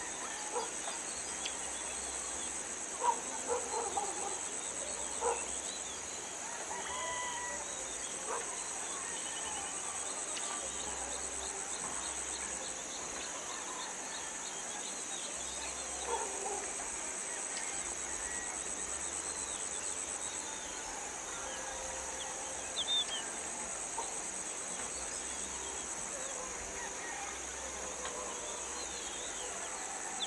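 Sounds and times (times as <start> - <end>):
birds in a village: 0.0 - 30.2
insects in a village: 0.0 - 30.2
dogs in a village: 3.0 - 5.6, 8.2 - 8.7, 16.0 - 16.9.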